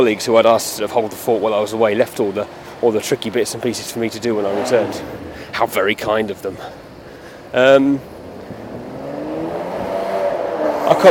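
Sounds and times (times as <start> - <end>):
speech: 0.0 - 6.8, 7.5 - 8.1
Ferrari sports car engine revving past: 4.1 - 5.8, 8.0 - 11.0.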